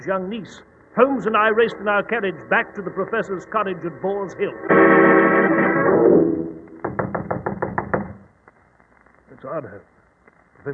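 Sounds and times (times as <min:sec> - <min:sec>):
speech: 0:00.0 - 0:06.4, 0:09.4 - 0:09.9
sustained tonal sound: 0:01.5 - 0:06.8
knocking on a cottage door: 0:06.8 - 0:08.3.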